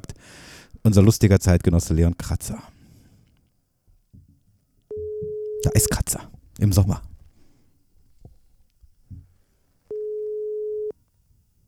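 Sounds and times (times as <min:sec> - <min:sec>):
speech: 0:00.8 - 0:02.8, 0:05.6 - 0:07.1
telephone ringing tone over a call line: 0:04.9 - 0:05.9, 0:09.9 - 0:10.9.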